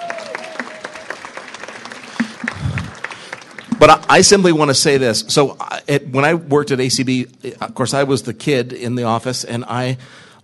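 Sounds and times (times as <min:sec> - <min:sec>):
audience applause: 0:00.0 - 0:04.4
speech: 0:03.8 - 0:10.2.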